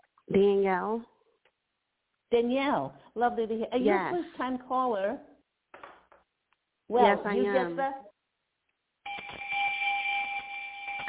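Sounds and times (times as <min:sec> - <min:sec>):
speech: 0:00.3 - 0:01.2, 0:02.3 - 0:05.3, 0:06.9 - 0:08.1
electronic bell sound effect for first-time caller: 0:09.1 - 0:11.0.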